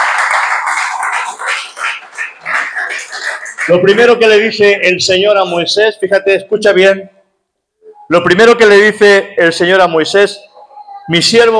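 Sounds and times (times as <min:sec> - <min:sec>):
audience applauding: 0:00.0 - 0:04.3
speech: 0:03.7 - 0:07.2, 0:08.1 - 0:10.5, 0:11.1 - 0:11.5.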